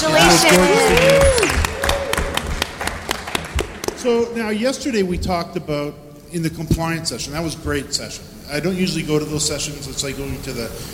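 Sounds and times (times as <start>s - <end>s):
speech: 0.0s - 1.2s, 4.0s - 10.9s
audience applause: 0.0s - 4.3s.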